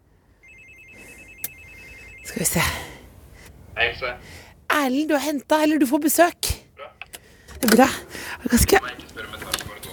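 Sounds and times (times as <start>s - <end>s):
electronic doorbell trilling at an apartment entrance: 0.4s - 2.8s
speech: 2.3s - 2.9s, 3.8s - 6.5s, 7.6s - 9.3s.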